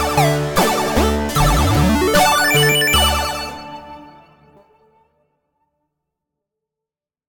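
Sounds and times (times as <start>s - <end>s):
victory music: 0.2s - 4.0s.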